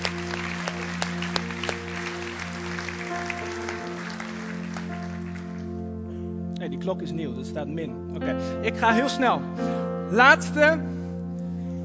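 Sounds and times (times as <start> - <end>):
audience applause: 0.0 - 5.8
speech: 6.7 - 11.0.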